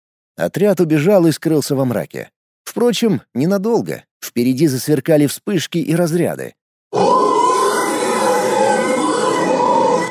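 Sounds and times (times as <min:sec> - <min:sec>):
speech: 0:00.4 - 0:07.2
monsters screeching in a tunnel: 0:06.9 - 0:10.0.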